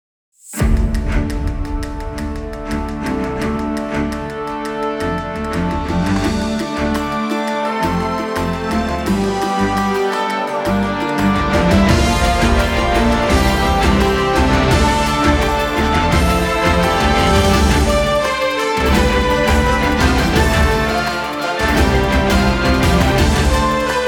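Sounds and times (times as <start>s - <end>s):
groove music: 0.6s - 24.0s.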